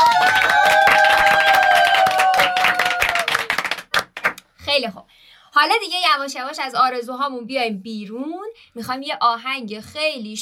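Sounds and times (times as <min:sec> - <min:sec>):
studio show audience clapping: 0:00.0 - 0:04.4
speech: 0:04.8 - 0:10.4.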